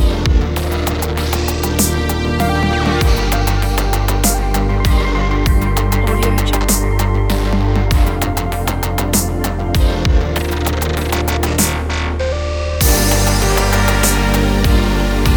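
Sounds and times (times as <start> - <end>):
relaxing electronic ambient music: 0.0 - 15.3.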